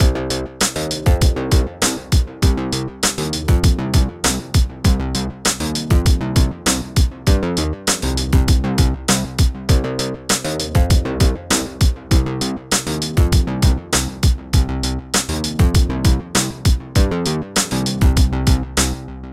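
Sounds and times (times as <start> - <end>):
retro action groove music: 0.0 - 19.3.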